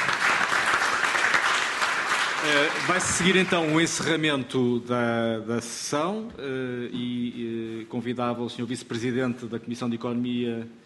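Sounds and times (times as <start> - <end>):
conference audience applause closing a panel session: 0.0 - 4.3
speech: 2.4 - 10.8.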